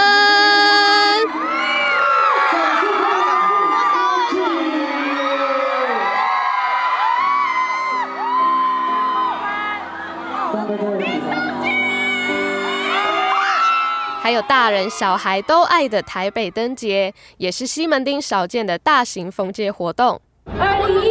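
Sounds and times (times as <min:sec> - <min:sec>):
fans screaming at autograph event: 0:00.0 - 0:10.6, 0:11.7 - 0:16.7
speech: 0:14.4 - 0:21.0.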